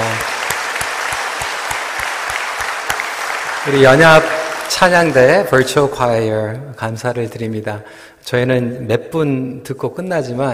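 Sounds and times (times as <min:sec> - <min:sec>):
audience applause: 0:00.0 - 0:05.6
speech: 0:03.6 - 0:10.5.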